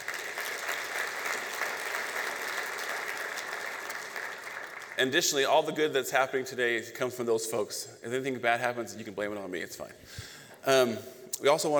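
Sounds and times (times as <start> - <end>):
audience applause: 0.0 - 5.0
speech: 5.0 - 11.7.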